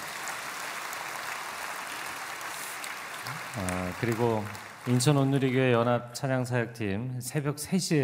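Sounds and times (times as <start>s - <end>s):
audience applause: 0.0s - 5.7s
speech: 3.3s - 8.0s.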